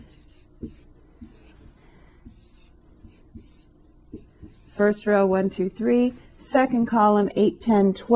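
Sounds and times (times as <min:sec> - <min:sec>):
writing matrix numbers by hand: 0:00.0 - 0:05.8
speech: 0:04.8 - 0:08.1.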